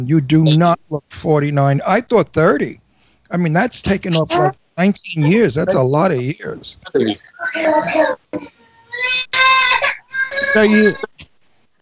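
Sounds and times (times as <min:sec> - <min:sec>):
speech: 0:00.0 - 0:09.1, 0:10.5 - 0:11.2
child screaming: 0:08.8 - 0:11.1.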